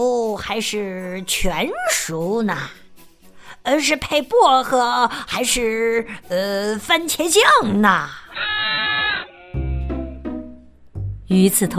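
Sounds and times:
speech: 0:00.0 - 0:02.8, 0:03.6 - 0:08.5, 0:11.3 - 0:11.7
lambs bleating on a hillside: 0:08.3 - 0:10.2.

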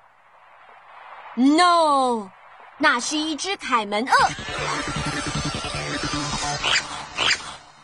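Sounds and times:
speech: 0:01.4 - 0:05.2
otter call: 0:04.1 - 0:07.6.

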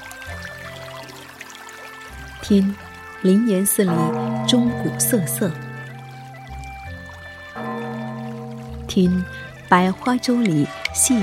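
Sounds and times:
spring water trickling: 0:00.0 - 0:11.2
speech: 0:02.4 - 0:05.7, 0:09.0 - 0:11.2.

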